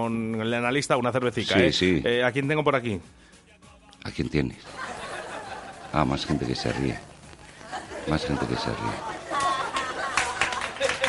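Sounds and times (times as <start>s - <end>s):
speech: 0.0s - 3.3s, 4.0s - 5.0s, 5.9s - 7.1s, 8.0s - 9.1s
laughter: 4.6s - 11.0s
group of many hands clapping: 8.7s - 11.0s.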